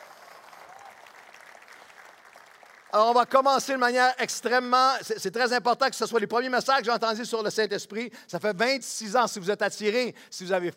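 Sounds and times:
church congregation applauding: 0.0s - 5.0s
speech: 2.9s - 10.7s.

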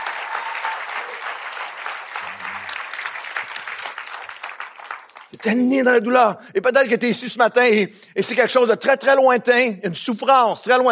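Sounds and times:
congregation applauding at a morning church service: 0.0s - 5.9s
speech: 5.4s - 10.9s.

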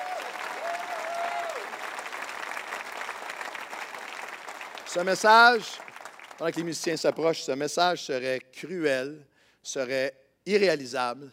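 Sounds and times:
person whooping: 0.0s - 1.7s
church congregation applauding: 0.0s - 7.2s
speech: 4.9s - 11.3s.

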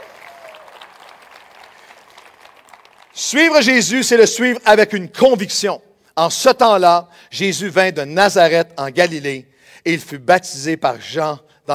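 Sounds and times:
audience applause: 0.0s - 3.2s
speech: 3.2s - 11.7s.

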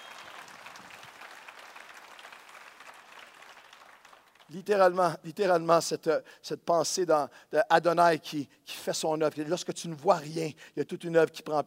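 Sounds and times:
audience applauding: 0.0s - 4.5s
speech: 4.5s - 11.6s.

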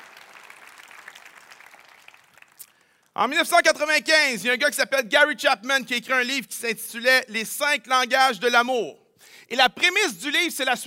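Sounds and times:
audience applauding themselves for their generosity: 0.0s - 3.1s
speech: 3.2s - 10.8s.

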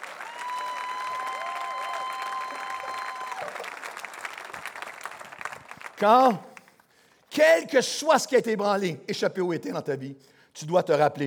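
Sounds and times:
applause: 0.0s - 7.2s
speech: 6.0s - 6.5s, 7.4s - 11.2s.

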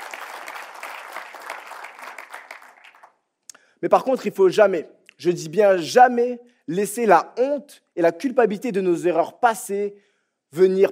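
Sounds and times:
audience applause: 0.0s - 3.2s
speech: 3.8s - 10.9s.

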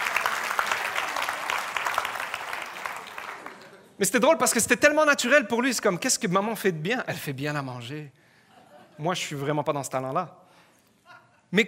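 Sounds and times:
audience applause: 0.0s - 4.0s
speech: 4.0s - 8.2s, 9.0s - 10.4s.

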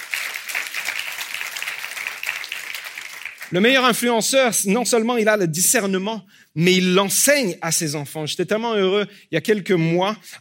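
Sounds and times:
audience applause: 0.0s - 3.5s
speech: 3.5s - 10.4s.

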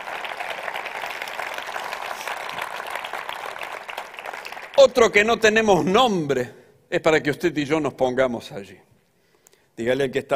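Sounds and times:
audience applause: 0.0s - 5.1s
speech: 4.8s - 8.9s, 9.8s - 10.3s.

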